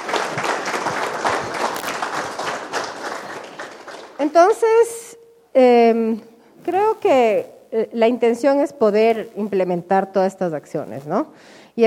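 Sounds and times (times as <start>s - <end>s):
audience applause: 0.0s - 4.3s
speech: 4.2s - 5.0s, 5.6s - 11.8s.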